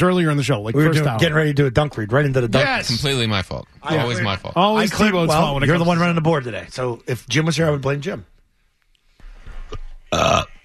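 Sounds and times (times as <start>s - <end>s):
speech: 0.0s - 8.3s, 10.1s - 10.6s
burp: 10.0s - 10.6s.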